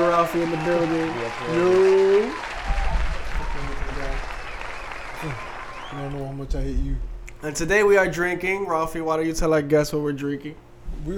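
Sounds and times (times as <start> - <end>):
applause: 0.0 - 6.4
speech: 0.2 - 2.8, 5.2 - 11.1.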